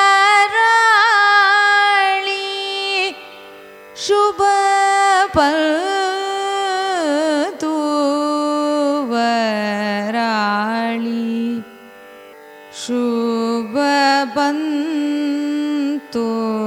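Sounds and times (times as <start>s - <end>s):
Carnatic music raga Subha Pantuvarali signature: 0.0s - 16.6s.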